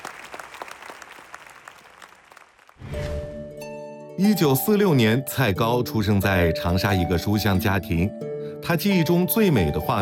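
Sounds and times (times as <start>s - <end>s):
sustained audience applause: 0.0s - 2.8s
speech: 4.2s - 10.0s.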